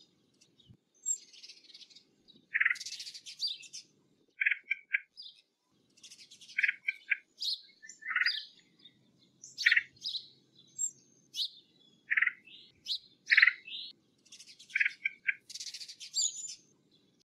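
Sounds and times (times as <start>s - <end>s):
red-headed woodpecker call in the USA: 2.5s - 3.7s, 4.4s - 5.2s, 6.6s - 8.6s, 9.6s - 10.2s, 12.1s - 13.9s, 14.7s - 16.5s.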